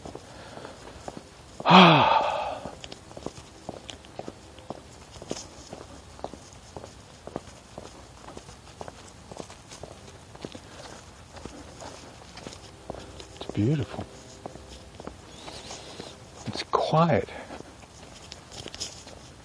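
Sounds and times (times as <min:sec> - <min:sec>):
footsteps of a person walking outdoors: 0:00.0 - 0:19.4
speech: 0:01.6 - 0:02.1, 0:17.0 - 0:17.2
loud breathy sigh: 0:01.6 - 0:02.8.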